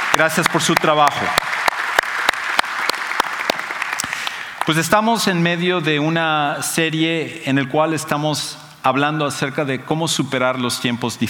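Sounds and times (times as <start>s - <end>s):
audience applause: 0.0s - 4.8s
speech: 0.2s - 1.5s, 4.7s - 11.2s.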